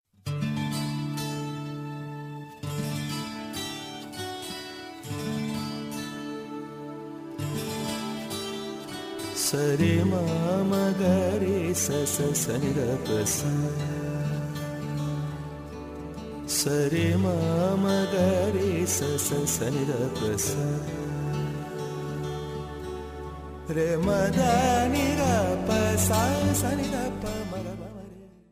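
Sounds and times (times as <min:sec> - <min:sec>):
guitar melody: 0:00.2 - 0:28.5.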